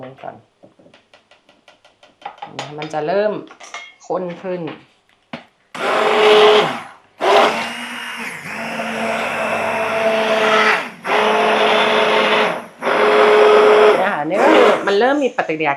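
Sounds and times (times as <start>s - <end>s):
speech: 0.0s - 0.5s, 2.5s - 4.9s, 15.0s - 15.7s
electric stick blender mixing soap mixture: 5.8s - 15.2s.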